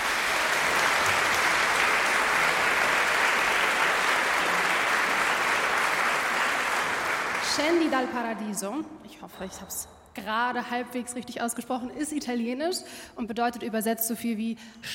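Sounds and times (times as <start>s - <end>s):
audience applause after choir performance: 0.0s - 8.4s
speech: 7.6s - 14.9s.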